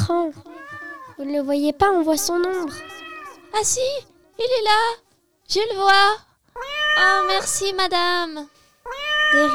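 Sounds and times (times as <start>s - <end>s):
cat meowing: 0.0s - 1.3s, 2.3s - 4.2s, 6.6s - 9.5s
speech: 0.1s - 0.5s, 1.2s - 2.9s, 3.5s - 8.5s, 9.3s - 9.5s.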